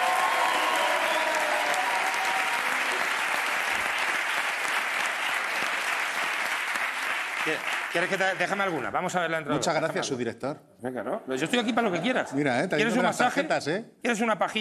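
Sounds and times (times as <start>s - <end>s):
audience applause: 0.0s - 8.8s
speech: 7.4s - 14.5s.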